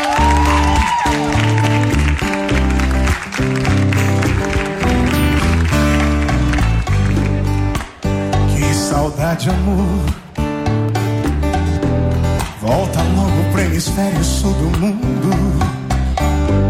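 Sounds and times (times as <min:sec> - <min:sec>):
audience applause: 0:00.0 - 0:08.0
live band music with thumping bass line: 0:00.0 - 0:16.6.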